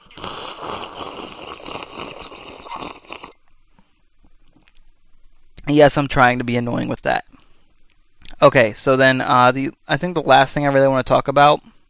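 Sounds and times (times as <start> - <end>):
sipping a drink: 0.0 - 3.4
speech: 5.7 - 7.3, 8.4 - 11.8.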